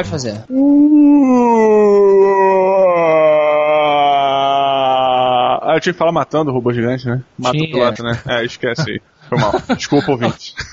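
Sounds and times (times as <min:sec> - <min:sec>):
speech: 0:00.0 - 0:02.7, 0:05.8 - 0:10.7
man vocally imitating a slow-motion scream: 0:00.5 - 0:05.7
laughter: 0:08.8 - 0:10.7.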